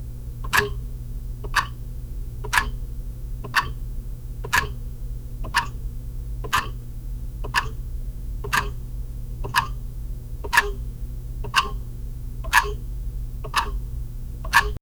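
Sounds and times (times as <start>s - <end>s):
faint clock ticking: 0.0s - 14.8s.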